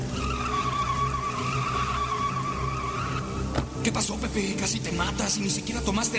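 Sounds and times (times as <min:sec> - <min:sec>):
car tires skidding as the driver loses control after brake trouble: 0:00.0 - 0:04.0
speech: 0:03.8 - 0:06.1.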